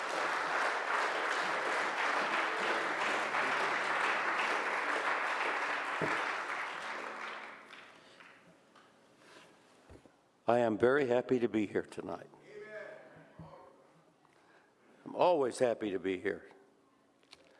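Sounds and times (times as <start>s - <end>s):
audience clapping hands: 0.0s - 8.4s
speech: 10.5s - 12.4s, 15.2s - 16.5s.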